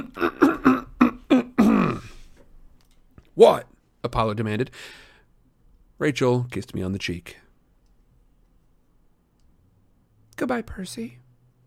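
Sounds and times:
reader clearing throat for a character: 0.0s - 2.3s
speech: 3.4s - 5.0s, 6.0s - 7.4s, 10.4s - 11.6s.

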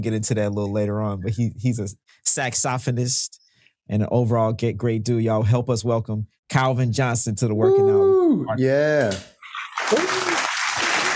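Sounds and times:
speech: 0.0s - 9.3s, 9.9s - 10.2s
audience clapping: 9.6s - 11.1s
people whooping and cheering: 9.8s - 11.1s.

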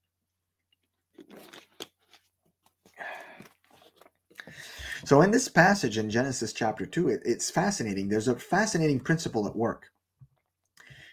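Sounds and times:
person sipping and swallowing water: 0.8s - 4.9s
speech: 5.0s - 10.0s.

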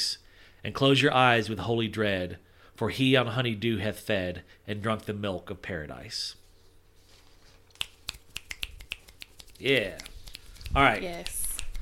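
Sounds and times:
speech: 0.6s - 6.4s, 9.6s - 10.1s, 10.7s - 11.4s
finger snapping as jazz claps: 7.7s - 11.8s.

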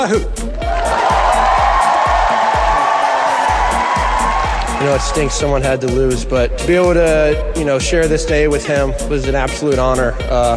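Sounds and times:
speech: 0.0s - 0.4s, 4.8s - 10.5s
loud stadium crowd applauding and cheering: 0.0s - 7.1s.

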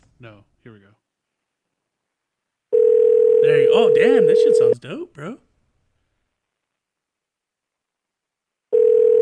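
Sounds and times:
speech: 0.2s - 1.0s, 3.4s - 5.5s
telephone call ringing tone while waiting for pickup: 2.7s - 4.8s, 8.7s - 9.2s.

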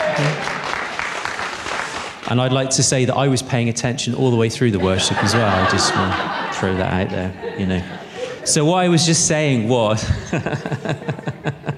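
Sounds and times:
audience applauding: 0.0s - 2.5s
speech: 2.3s - 11.7s
laughter: 4.7s - 11.7s.

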